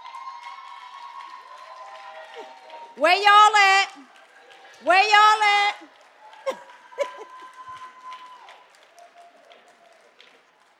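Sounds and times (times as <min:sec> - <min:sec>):
audience applause: 0:00.0 - 0:10.7
speech: 0:02.4 - 0:04.2, 0:04.8 - 0:06.6
laughter: 0:06.4 - 0:07.6.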